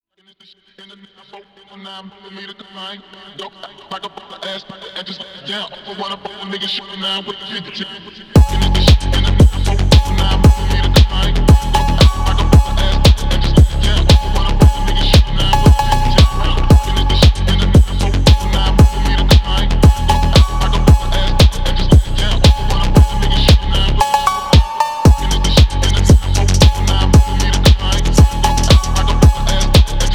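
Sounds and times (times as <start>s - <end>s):
phonk music: 8.4s - 30.1s.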